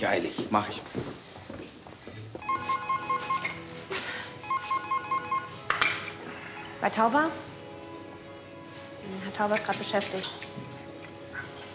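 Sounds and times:
speech: 0:00.0 - 0:01.2, 0:06.8 - 0:07.5, 0:09.1 - 0:10.7
telephone ringing: 0:02.4 - 0:03.6, 0:04.4 - 0:05.6.

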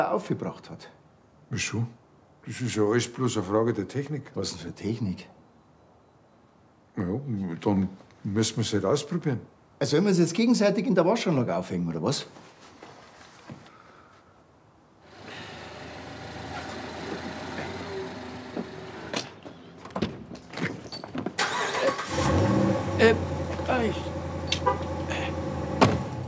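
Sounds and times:
speech: 0:00.0 - 0:05.4, 0:07.0 - 0:12.4
car engine starting and idling: 0:15.1 - 0:19.5, 0:21.4 - 0:26.2.

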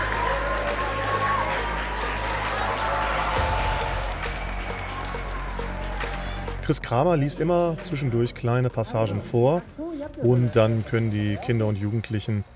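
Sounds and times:
audience applause: 0:00.0 - 0:06.6
speech: 0:06.7 - 0:12.5.

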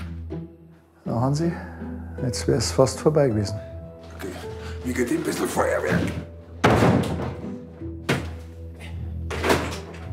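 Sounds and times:
speech: 0:01.0 - 0:03.7, 0:04.8 - 0:06.3
chair jammed against a door as barricade: 0:06.0 - 0:08.5, 0:09.3 - 0:10.1.

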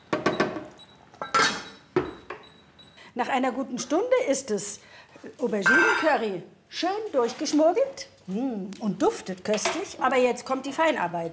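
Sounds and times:
lid set onto a cooking pot: 0:01.2 - 0:01.6
speech: 0:03.2 - 0:11.3.

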